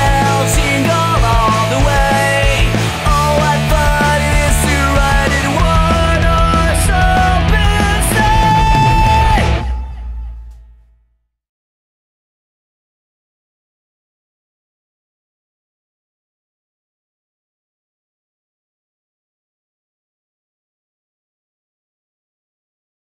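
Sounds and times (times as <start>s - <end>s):
rock version of a Christmas song: 0.0s - 10.4s.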